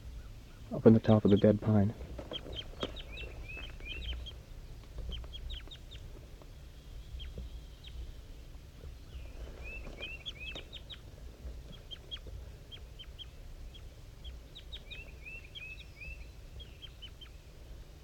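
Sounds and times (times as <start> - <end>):
wild bird and tagged bird calling: 0.0 - 18.0
speech: 0.7 - 2.1.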